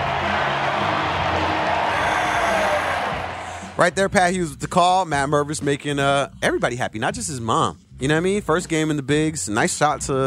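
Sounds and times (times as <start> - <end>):
ballpark crowd cheering: 0.0 - 3.8
speech: 3.8 - 10.2.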